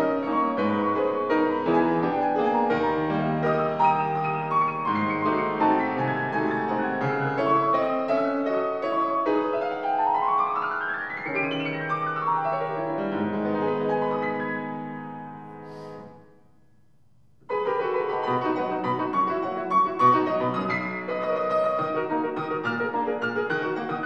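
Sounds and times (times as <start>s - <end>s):
piano: 0.0s - 24.0s.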